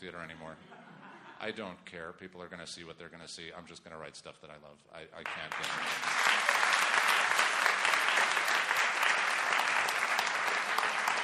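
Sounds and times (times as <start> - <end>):
speech: 0.0 - 6.5
audience applause: 5.2 - 11.2.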